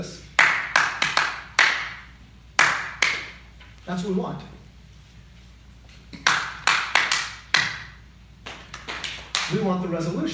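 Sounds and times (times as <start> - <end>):
rhythmic hand claps: 0.4 - 3.5, 6.1 - 9.7
speech: 3.9 - 4.6, 9.5 - 10.3.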